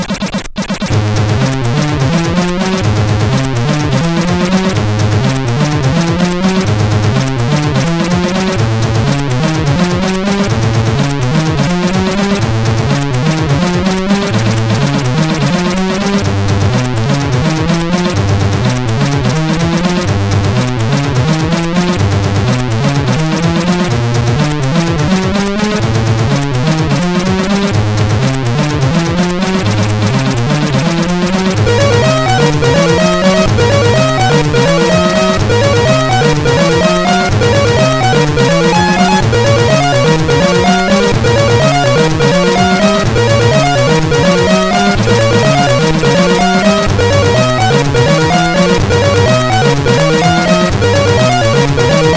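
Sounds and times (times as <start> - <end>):
chiptune music on CSG8580R5 sound chip: 0.1 - 52.1.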